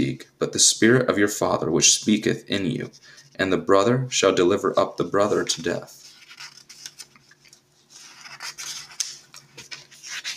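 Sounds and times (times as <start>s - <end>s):
speech: 0.0s - 6.0s
book page turning: 5.1s - 10.3s.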